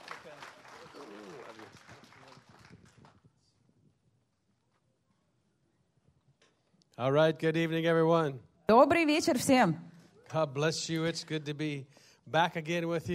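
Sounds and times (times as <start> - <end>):
audience applause welcoming a speaker: 0.0 - 3.2
speech: 7.0 - 13.1.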